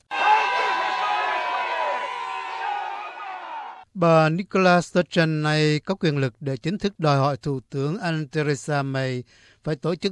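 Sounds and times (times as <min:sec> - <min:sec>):
independence supporters cheering outside the Scottish parliament: 0:00.0 - 0:03.8
speech: 0:04.0 - 0:10.0.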